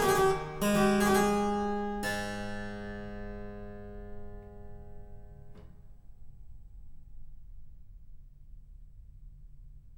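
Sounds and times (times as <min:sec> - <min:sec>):
harpsichord minuet: 0:00.0 - 0:05.5.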